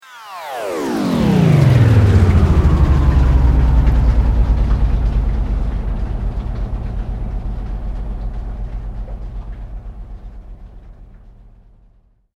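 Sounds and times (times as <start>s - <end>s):
slow mechanical sweep: 0.4s - 11.7s.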